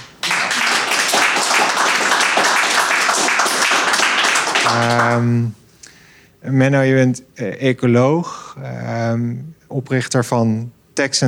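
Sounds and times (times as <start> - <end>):
crowd applause: 0.0 - 5.4
speech: 4.7 - 5.6, 6.4 - 11.2.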